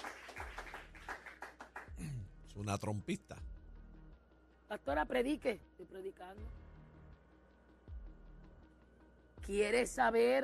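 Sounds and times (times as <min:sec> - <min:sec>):
audience clapping: 0:00.0 - 0:02.1
speech: 0:02.6 - 0:03.5, 0:04.7 - 0:06.6, 0:09.4 - 0:10.4.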